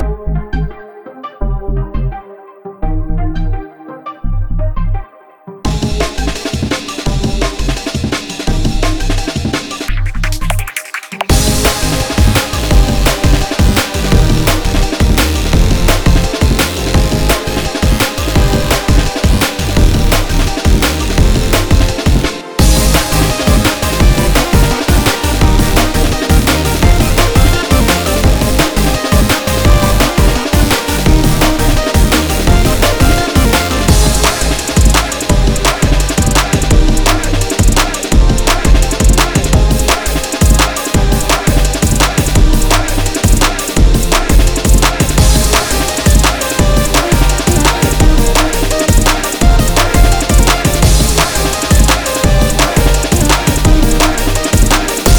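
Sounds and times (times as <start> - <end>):
instrumental music: 0.0 - 55.1.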